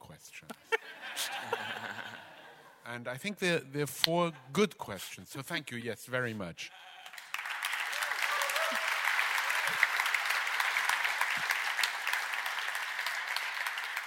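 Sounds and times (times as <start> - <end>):
speech: 0.2 - 0.6, 2.9 - 6.9
laughter: 0.7 - 2.8, 6.7 - 7.4
audience applause: 6.8 - 14.0.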